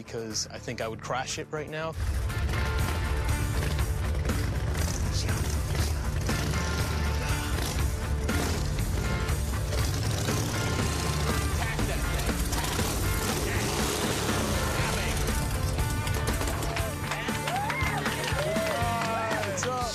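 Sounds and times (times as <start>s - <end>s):
speech: 0.0s - 2.6s
chopper motorcycle riding in: 2.0s - 19.3s.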